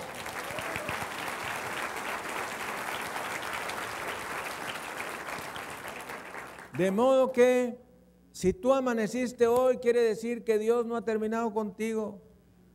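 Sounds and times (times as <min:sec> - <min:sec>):
audience applauding: 0:00.0 - 0:06.8
speech: 0:06.8 - 0:07.8, 0:08.4 - 0:12.3.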